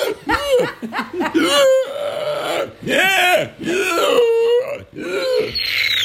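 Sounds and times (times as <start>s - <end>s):
laughter: 0.0s - 2.1s
person imitating a male pig: 1.4s - 6.0s.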